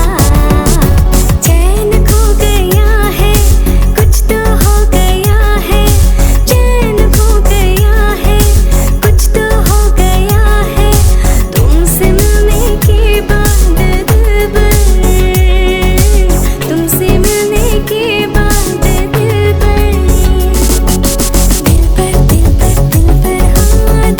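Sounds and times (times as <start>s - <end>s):
Bollywood mashup beat: 0.0s - 24.1s.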